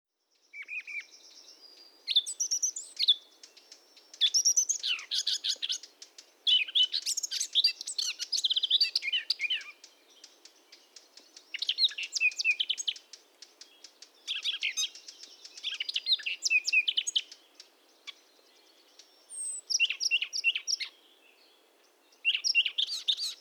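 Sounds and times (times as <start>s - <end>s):
Eurasian blackcap singing: 0.4s - 21.5s, 22.1s - 23.4s.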